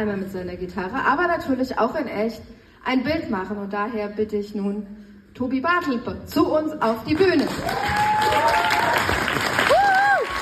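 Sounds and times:
speech: 0.0s - 9.2s
live audience applause at an on-stage evening event: 7.4s - 10.4s.

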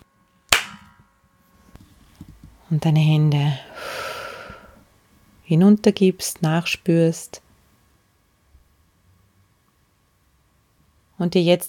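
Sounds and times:
single sharp hand clap: 0.5s - 0.9s
speech: 2.7s - 3.7s, 5.5s - 7.4s, 11.2s - 11.6s.

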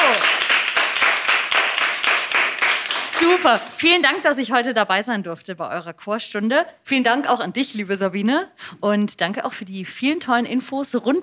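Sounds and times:
children clapping applause: 0.0s - 4.0s
speech: 3.4s - 11.2s.

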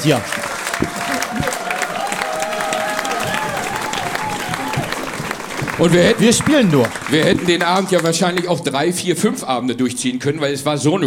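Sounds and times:
speech: 0.0s - 1.1s, 5.8s - 11.0s
concert audience applause: 0.0s - 8.8s.

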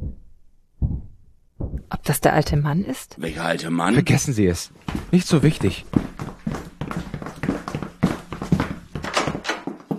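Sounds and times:
speech: 2.1s - 6.1s
footsteps in the room overhead: 4.8s - 9.9s.

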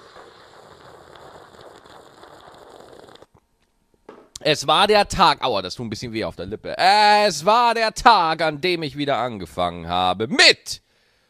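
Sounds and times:
dramatic sip from a coffee cup: 0.0s - 3.3s
speech: 4.4s - 10.8s.

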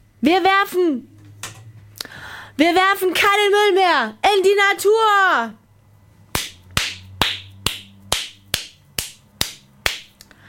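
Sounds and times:
speech: 0.2s - 1.1s, 2.6s - 5.6s
hand clapping: 6.3s - 10.4s.

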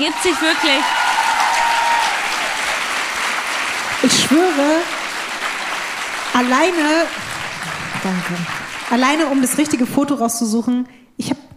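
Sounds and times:
speech: 0.0s - 1.0s, 4.0s - 5.0s, 6.4s - 7.3s, 8.0s - 11.5s
audience applause: 0.0s - 10.2s.

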